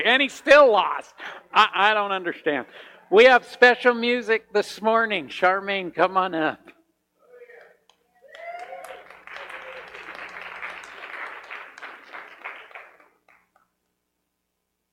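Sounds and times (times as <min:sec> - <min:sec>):
speech: 0:00.0 - 0:06.8
audience applause: 0:08.3 - 0:13.6.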